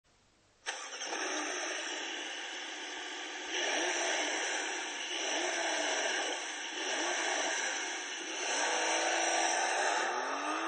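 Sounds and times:
Porsche 911 engine: 0.6s - 10.6s.

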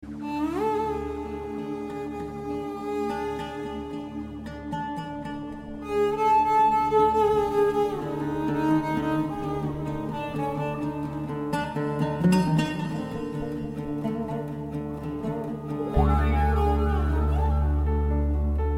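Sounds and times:
oud: 0.0s - 18.7s.

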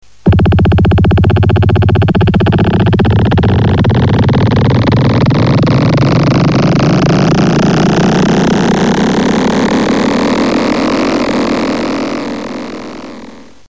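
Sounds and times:
alien craft lift-off: 0.2s - 13.6s.

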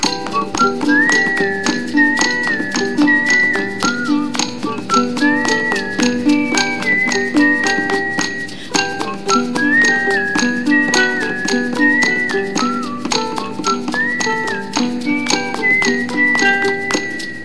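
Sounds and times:
happy whistling: 0.0s - 17.4s.

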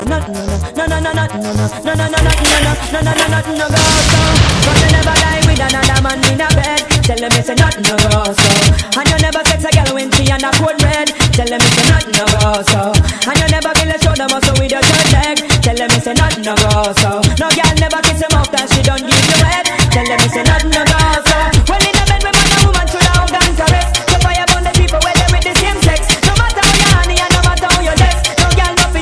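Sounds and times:
remix music: 0.1s - 29.0s.

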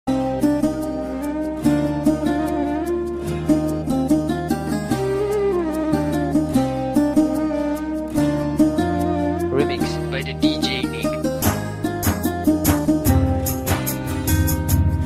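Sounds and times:
Punjabi music: 0.1s - 15.0s.

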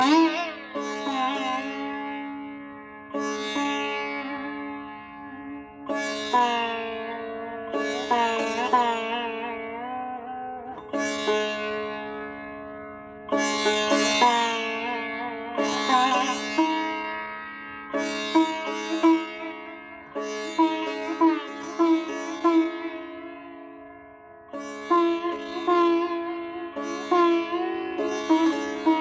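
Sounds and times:
sitar: 0.0s - 29.0s.

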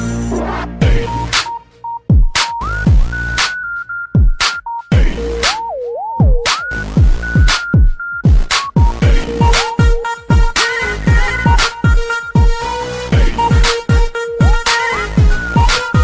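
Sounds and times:
heavy bass: 0.1s - 1.5s, 2.6s - 3.5s, 4.9s - 7.6s, 8.3s - 16.0s.

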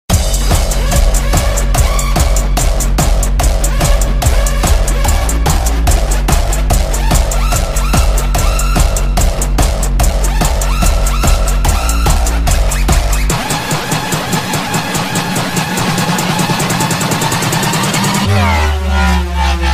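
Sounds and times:
lazy shuffle rhythm music: 0.1s - 19.7s.

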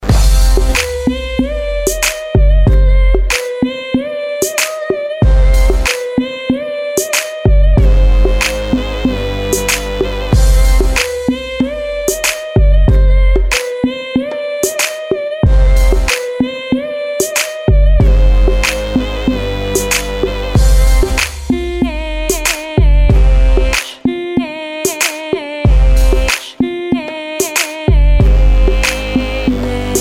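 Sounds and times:
oriental music: 0.0s - 29.9s.

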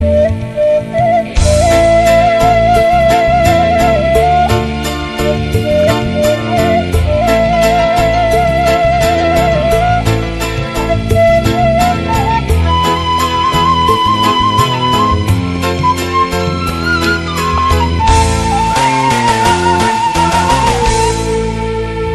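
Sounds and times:
Sundanese suling bamboo flute: 0.0s - 22.1s.

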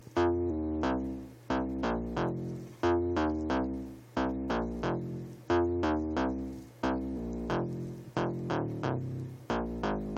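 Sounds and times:
bass loop: 0.0s - 10.1s.

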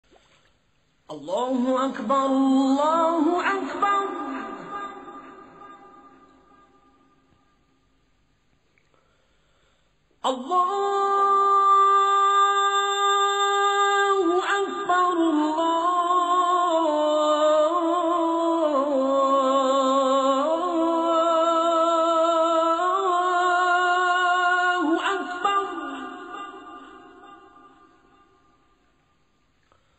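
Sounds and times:
Azan call to prayer: 1.1s - 6.6s, 10.2s - 28.4s.

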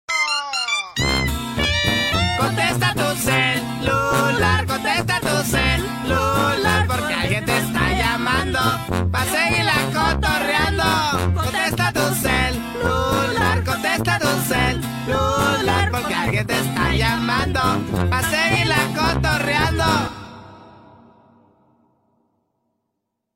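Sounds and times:
cumbia music: 0.0s - 21.2s.

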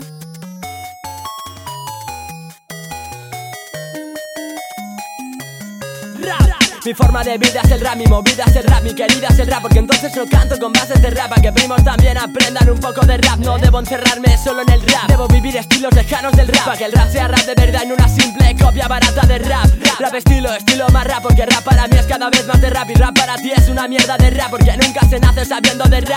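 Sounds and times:
rap music: 6.1s - 26.1s.

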